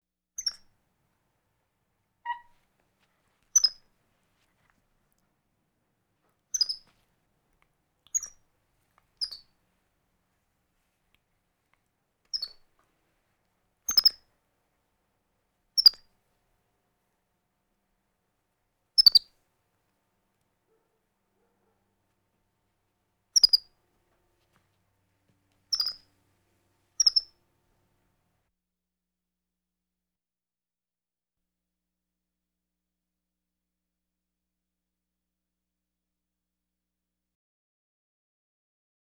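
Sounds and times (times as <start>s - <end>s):
capuchin monkey squeaky chirps: 0.4s - 0.7s, 2.2s - 2.6s, 3.5s - 3.8s, 6.5s - 6.9s, 8.1s - 8.4s, 9.2s - 9.5s, 12.3s - 12.6s, 13.9s - 14.2s, 15.8s - 16.0s, 19.0s - 19.3s, 23.4s - 23.7s, 25.7s - 26.1s, 27.0s - 27.3s.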